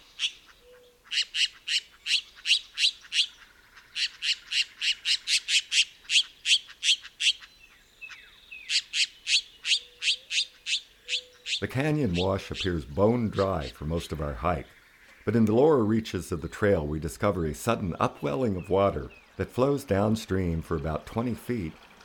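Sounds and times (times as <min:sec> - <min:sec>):
Mexican jay squawking calls: 0:00.0 - 0:15.3
speech: 0:11.7 - 0:21.8.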